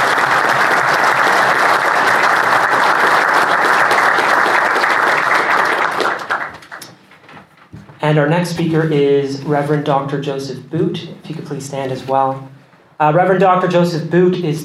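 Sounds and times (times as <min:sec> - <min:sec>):
audience applause: 0:00.0 - 0:06.8
speech: 0:08.1 - 0:14.6.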